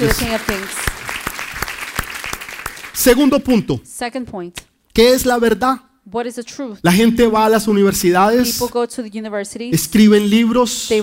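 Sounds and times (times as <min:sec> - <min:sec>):
speech: 0:00.0 - 0:00.9, 0:03.0 - 0:11.0
audience applause: 0:00.0 - 0:03.3.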